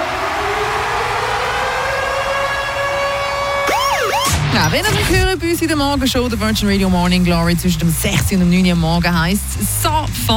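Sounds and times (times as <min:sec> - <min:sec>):
radio siren jingle: 0:00.0 - 0:05.4
speech: 0:04.6 - 0:10.3.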